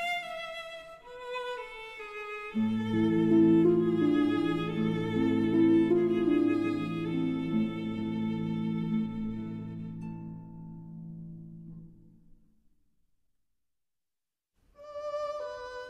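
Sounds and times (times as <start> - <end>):
berceuse for violin and harp: 0.0 - 10.8, 14.8 - 15.8.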